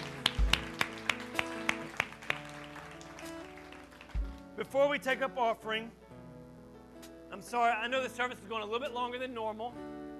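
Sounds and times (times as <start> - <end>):
audience applauding: 0.0 - 4.5
speech: 4.6 - 6.0, 7.4 - 10.0.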